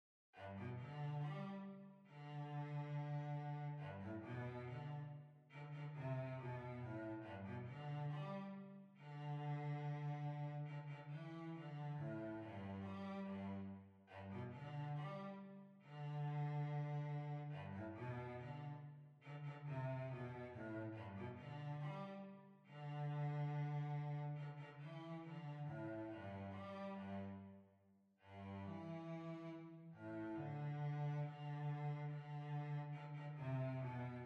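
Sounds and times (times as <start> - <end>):
hornpipe on violoncello: 0.4 - 27.6, 28.2 - 34.2.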